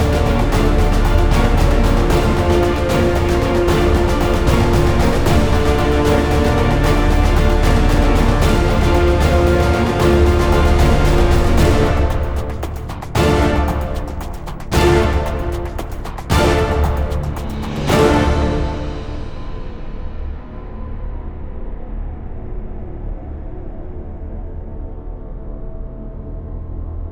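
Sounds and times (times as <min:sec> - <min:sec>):
orchestra: 0:00.0 - 0:20.4.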